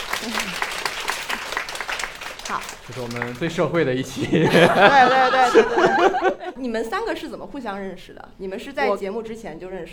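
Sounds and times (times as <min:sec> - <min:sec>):
audience applause: 0:00.0 - 0:03.9
speech: 0:00.2 - 0:00.7, 0:02.5 - 0:09.9
laughter: 0:04.1 - 0:06.6.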